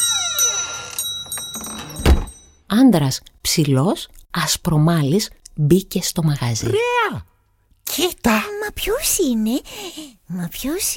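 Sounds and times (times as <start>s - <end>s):
door bell ringing at shop door: 0.0s - 2.6s
speech: 2.7s - 7.3s, 7.9s - 10.9s.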